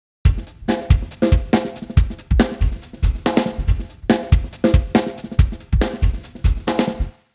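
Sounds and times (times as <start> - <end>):
drums: 0.3 - 7.2.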